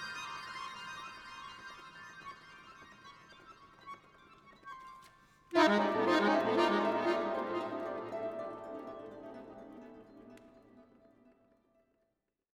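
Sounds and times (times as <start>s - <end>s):
harp: 5.5s - 10.8s.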